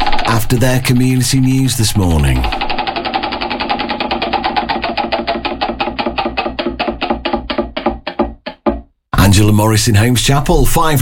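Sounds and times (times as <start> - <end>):
prize wheel spinning and clicking: 0.0 - 8.6
speech: 0.5 - 2.6, 9.4 - 10.9.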